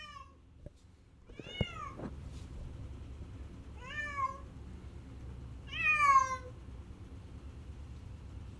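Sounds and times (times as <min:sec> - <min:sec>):
cat giving plaintive meows: 0:01.3 - 0:02.0, 0:03.8 - 0:04.5, 0:05.7 - 0:06.5.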